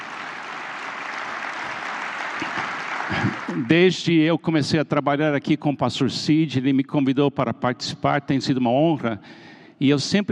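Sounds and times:
audience applause: 0.0 - 4.0
speech: 3.5 - 10.3.

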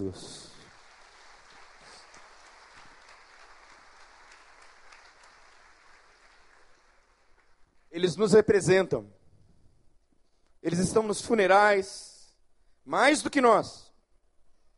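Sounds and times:
speech: 0.0 - 0.5, 8.0 - 9.2, 10.6 - 12.1, 12.8 - 13.8
audience applause: 0.0 - 7.9.

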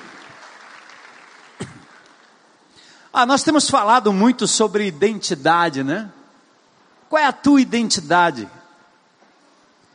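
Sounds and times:
audience applauding: 0.0 - 2.5
speech: 3.2 - 6.2, 7.1 - 8.6.

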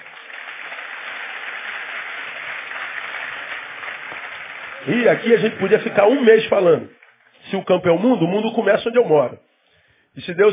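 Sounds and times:
audience applauding: 0.0 - 7.4
speech: 4.8 - 9.4, 10.2 - 10.5.

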